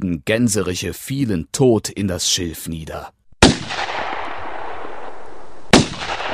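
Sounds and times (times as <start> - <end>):
speech: 0.0 - 3.2
gunshots with long rumbling echo: 3.4 - 6.3.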